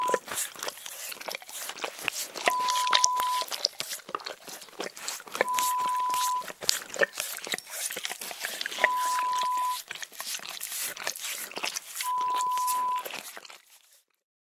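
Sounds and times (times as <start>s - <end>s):
dog licking: 0.0s - 14.1s.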